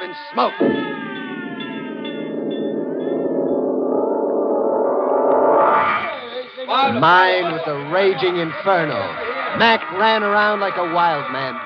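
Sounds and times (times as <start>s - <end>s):
speech: 0.1s - 1.0s, 6.6s - 11.6s
fire bell alarm ringing: 0.6s - 5.3s.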